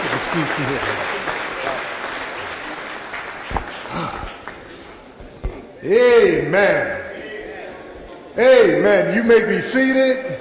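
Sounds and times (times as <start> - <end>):
church audience hand clapping: 0.0 - 5.1
speech: 0.3 - 1.1, 5.8 - 7.0, 8.4 - 10.4.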